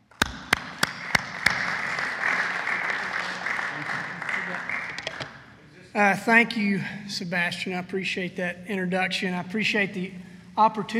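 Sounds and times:
audience applause welcoming a speaker: 0.4s - 5.3s
speech: 6.0s - 10.9s.

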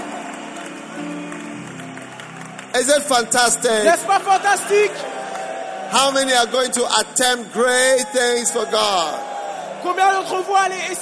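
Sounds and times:
audience clapping: 0.0s - 10.9s
speech: 2.8s - 5.2s, 5.9s - 10.9s.

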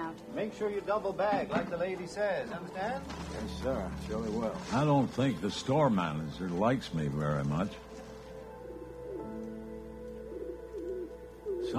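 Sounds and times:
steady hum: 0.0s - 11.7s
speech: 0.2s - 7.9s
pigeons cooing in a park: 7.8s - 11.7s.

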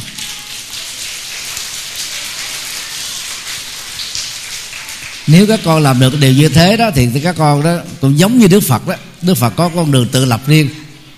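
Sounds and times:
children applauding: 0.0s - 5.5s
speech: 5.3s - 10.8s.

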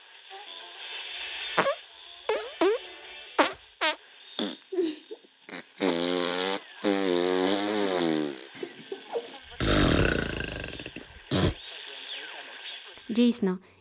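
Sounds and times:
speech: 0.3s - 0.7s, 13.2s - 13.8s
farting: 1.6s - 8.8s, 9.6s - 11.6s.

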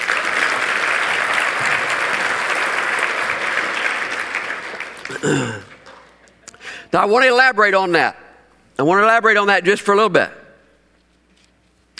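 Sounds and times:
audience applause: 0.0s - 6.2s
speech: 5.2s - 5.7s, 6.9s - 8.2s, 8.8s - 10.4s.

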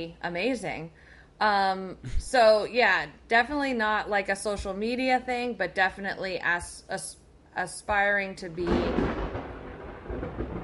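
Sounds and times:
speech: 0.0s - 9.2s
rain: 8.6s - 10.6s.

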